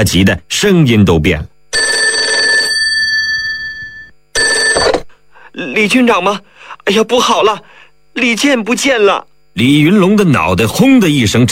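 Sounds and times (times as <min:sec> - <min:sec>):
speech: 0:00.0 - 0:01.8, 0:05.6 - 0:11.5
telephone on a desk ringing with an electric bell: 0:01.7 - 0:05.1.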